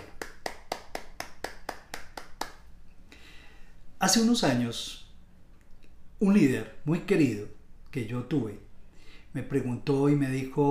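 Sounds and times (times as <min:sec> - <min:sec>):
audience applause: 0:00.0 - 0:02.5
speech: 0:04.0 - 0:05.0, 0:06.2 - 0:08.7, 0:09.3 - 0:10.6.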